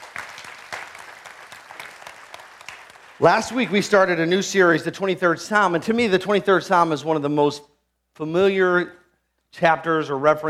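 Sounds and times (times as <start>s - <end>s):
audience clapping in applause: 0.0s - 4.3s
speech: 3.2s - 10.4s.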